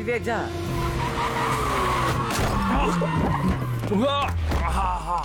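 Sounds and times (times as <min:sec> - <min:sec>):
speech: 0:00.1 - 0:00.6, 0:02.8 - 0:05.2
car tires screeching in a skid with failing brakes: 0:00.6 - 0:04.8.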